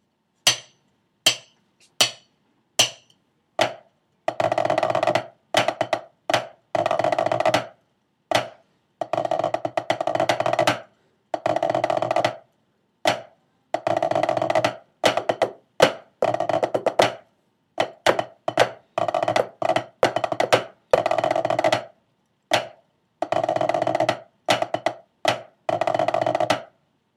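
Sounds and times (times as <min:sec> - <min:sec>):
tenor snare drum: 0:02.8 - 0:07.7, 0:08.3 - 0:12.4, 0:13.1 - 0:17.2, 0:17.8 - 0:21.9, 0:22.5 - 0:26.7.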